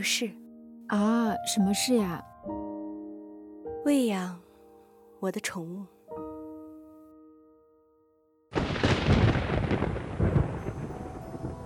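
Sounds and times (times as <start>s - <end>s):
speech: 0.0s - 2.6s, 3.8s - 4.4s, 5.2s - 5.9s
thunder: 8.5s - 11.6s.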